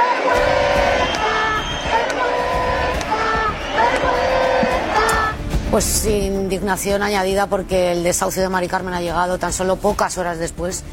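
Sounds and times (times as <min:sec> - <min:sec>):
protest crowd shouting: 0:00.0 - 0:05.4
speech: 0:05.7 - 0:10.9.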